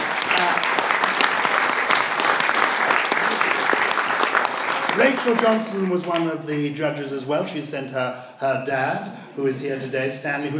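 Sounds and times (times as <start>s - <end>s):
audience applause for the judges: 0.0s - 6.3s
speech: 5.0s - 10.5s.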